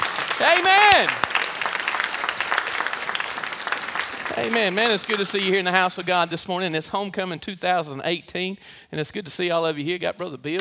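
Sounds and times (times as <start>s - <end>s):
church congregation applause during a homecoming morning service: 0.0s - 6.7s
speech: 0.4s - 1.3s, 4.4s - 10.5s.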